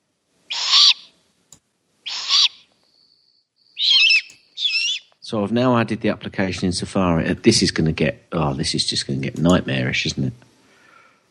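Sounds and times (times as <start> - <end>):
barn owl screeches: 0.5 - 1.1, 2.0 - 2.7, 3.8 - 5.1
speech: 5.3 - 10.5.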